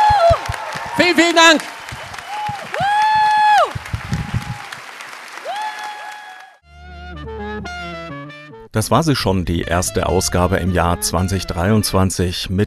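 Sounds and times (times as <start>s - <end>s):
audience applause: 0.0s - 6.6s
speech: 1.0s - 1.7s, 8.7s - 12.6s.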